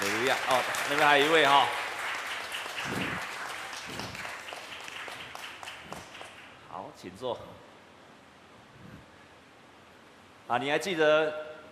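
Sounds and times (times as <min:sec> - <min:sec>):
crowd applause welcoming newcomers: 0:00.0 - 0:06.6
speech: 0:00.3 - 0:01.8, 0:06.8 - 0:07.7, 0:10.5 - 0:11.5.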